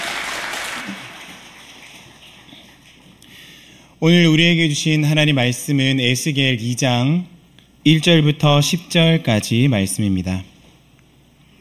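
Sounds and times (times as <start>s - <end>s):
audience applause: 0.0s - 3.2s
speech: 4.0s - 10.5s.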